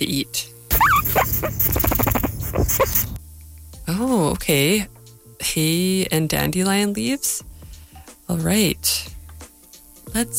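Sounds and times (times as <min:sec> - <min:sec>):
speech: 0:00.0 - 0:00.6, 0:01.2 - 0:02.1, 0:02.7 - 0:03.2, 0:03.9 - 0:07.5, 0:08.3 - 0:09.1, 0:10.1 - 0:10.3
guinea pig squeaking and wheeking: 0:00.7 - 0:03.2.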